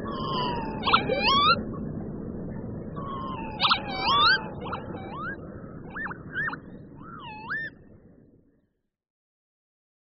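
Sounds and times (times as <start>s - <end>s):
northern lapwing call: 0.1s - 1.6s, 3.0s - 6.6s, 7.1s - 7.7s.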